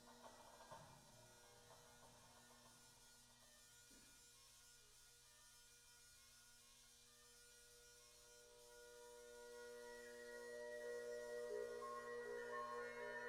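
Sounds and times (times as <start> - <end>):
bagpipes playing: 8.4 - 13.2.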